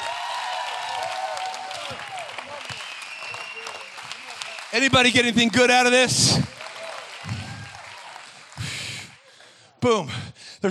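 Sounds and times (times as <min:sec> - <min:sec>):
audience shouting: 0:00.0 - 0:02.8, 0:06.6 - 0:08.2
audience clapping: 0:00.0 - 0:09.6
speech: 0:04.7 - 0:06.5, 0:09.8 - 0:10.6.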